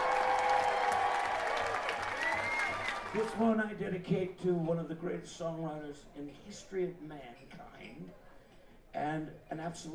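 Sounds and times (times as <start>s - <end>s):
audience applause: 0.0s - 3.5s
speech: 3.1s - 8.3s, 8.9s - 9.9s.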